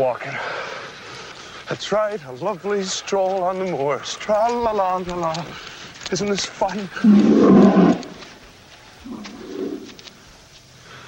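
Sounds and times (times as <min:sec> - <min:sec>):
speech: 0:00.0 - 0:00.5, 0:01.7 - 0:07.8
sheepdog growling: 0:07.0 - 0:08.3, 0:09.1 - 0:10.0.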